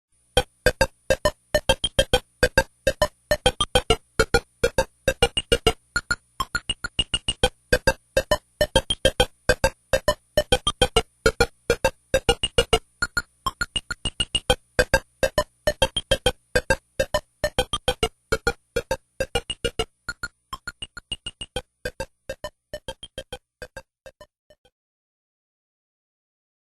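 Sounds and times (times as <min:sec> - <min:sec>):
game over soundtrack music: 0:00.4 - 0:23.9.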